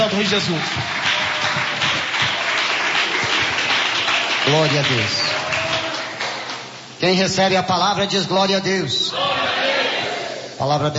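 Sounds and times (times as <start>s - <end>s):
large crowd applauding to welcome a speaker: 0.0s - 6.8s
speech: 0.2s - 1.7s, 4.5s - 5.4s, 7.0s - 9.6s, 10.6s - 10.9s.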